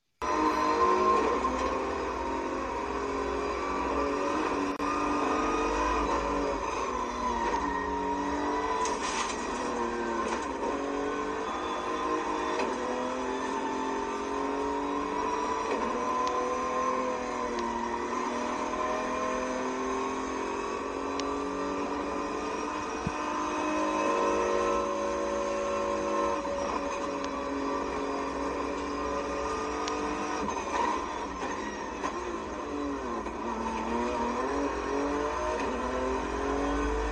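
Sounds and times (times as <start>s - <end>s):
racing car engine heard from inside the cockpit, accelerating and shifting: 0.2s - 37.0s.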